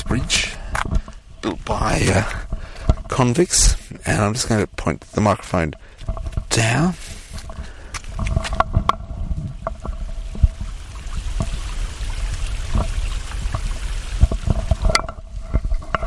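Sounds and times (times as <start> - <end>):
speech: 0.1 - 0.5, 1.7 - 2.4, 3.2 - 7.0
flowing stream water: 7.4 - 15.9.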